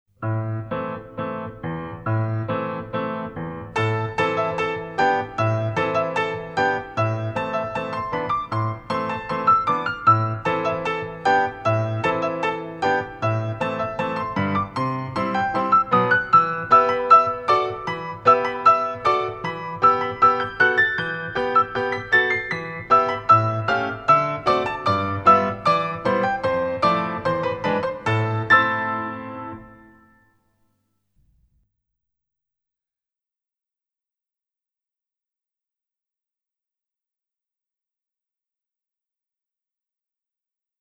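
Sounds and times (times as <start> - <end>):
solo version music piece for ballet pirouettes en dehors: 0.2 - 30.2.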